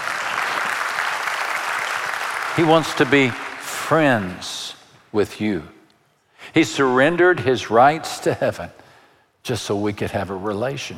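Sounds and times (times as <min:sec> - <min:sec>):
audience applause: 0:00.0 - 0:04.2
speech: 0:02.6 - 0:05.8, 0:06.4 - 0:08.8, 0:09.4 - 0:10.9.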